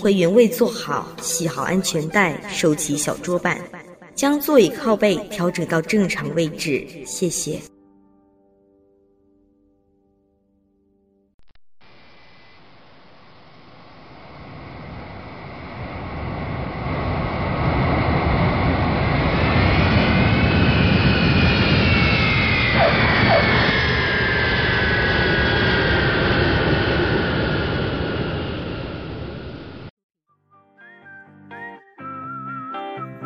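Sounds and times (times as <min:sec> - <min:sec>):
speech: 0:00.0 - 0:07.7
jet engine roar inside an airplane cabin descending to Beijing Capital Airport: 0:11.9 - 0:29.9.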